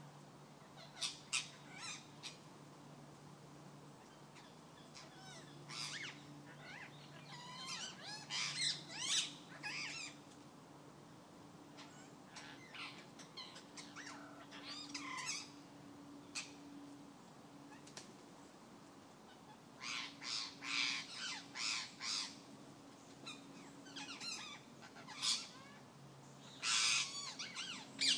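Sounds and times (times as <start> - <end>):
rose-ringed parakeets at Severndroog Castle: 0.6 - 2.5, 4.0 - 10.2, 11.7 - 15.6, 16.2 - 16.7, 19.3 - 22.5, 23.2 - 28.1.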